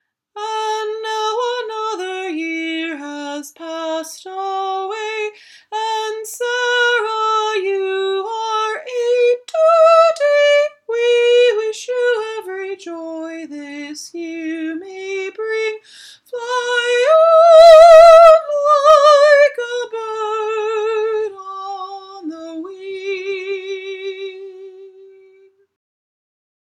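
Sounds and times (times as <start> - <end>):
birthday song: 0.3 - 25.8.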